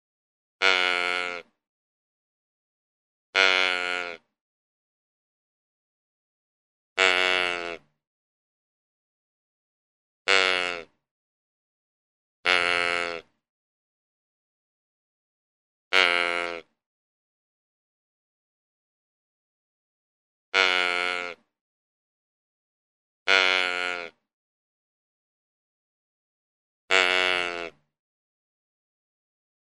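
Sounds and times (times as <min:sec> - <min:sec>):
deer giving nasal bleats: 0:00.6 - 0:01.5, 0:03.4 - 0:04.2, 0:07.0 - 0:07.9, 0:10.3 - 0:11.0, 0:12.4 - 0:13.3, 0:15.9 - 0:16.7, 0:20.6 - 0:21.5, 0:23.3 - 0:24.2, 0:26.9 - 0:27.8.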